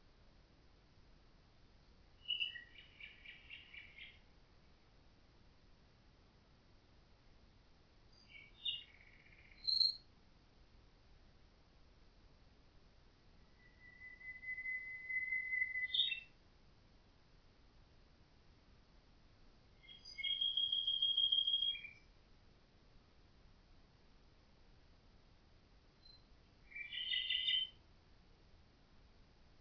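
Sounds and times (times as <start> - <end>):
common nightingale singing with whistled notes and fast rattling trill: 2.2 - 4.3, 8.1 - 10.1, 13.4 - 16.4, 19.7 - 22.2, 26.0 - 27.8.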